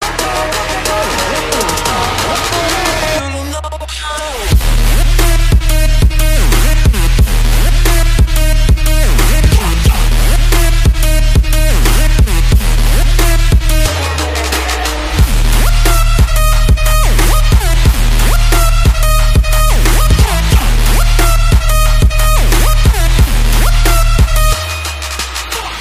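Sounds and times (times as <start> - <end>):
trap beat: 0.0 - 25.7.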